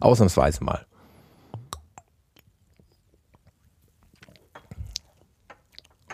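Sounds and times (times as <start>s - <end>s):
speech: 0.0s - 1.0s
soft mouth clicks: 1.5s - 6.0s
sipping and gulping Kellerpils beer: 1.5s - 6.1s.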